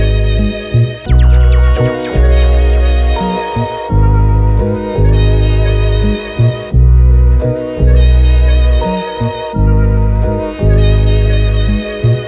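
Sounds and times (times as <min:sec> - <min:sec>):
melody: 0:00.0 - 0:12.2.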